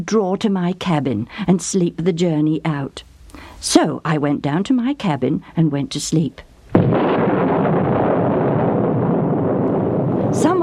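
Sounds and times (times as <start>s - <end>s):
speech: 0.0s - 7.0s
thunder crash: 6.7s - 10.6s.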